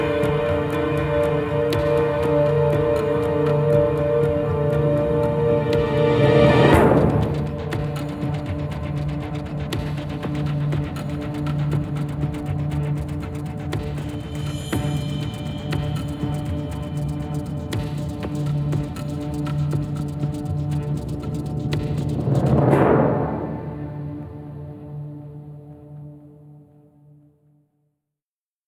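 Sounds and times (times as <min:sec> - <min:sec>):
music: 0:00.0 - 0:28.0.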